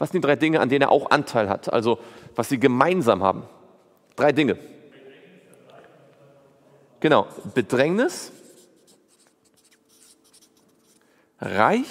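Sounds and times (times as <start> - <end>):
speech: 0.0 - 3.6, 4.2 - 4.8, 7.0 - 8.4, 11.4 - 11.8
scratchy handwriting of the word Geduld: 8.3 - 11.0.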